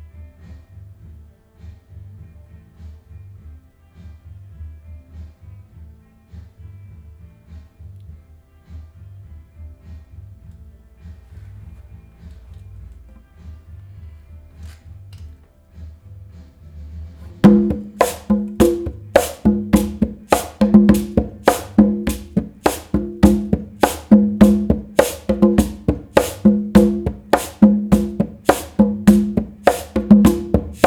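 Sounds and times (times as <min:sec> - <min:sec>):
conga drum: 0:17.4 - 0:30.8.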